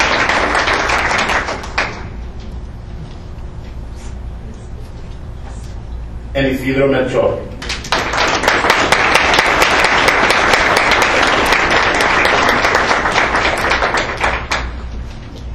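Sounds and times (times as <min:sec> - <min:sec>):
audience applause: 0:00.0 - 0:02.1, 0:07.6 - 0:14.8
speech: 0:06.4 - 0:07.5.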